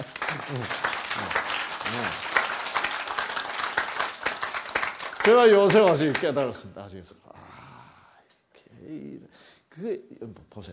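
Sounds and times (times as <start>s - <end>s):
audience applause: 0.0s - 6.6s
speech: 0.5s - 1.3s, 1.9s - 2.2s, 5.2s - 7.5s, 8.8s - 10.7s.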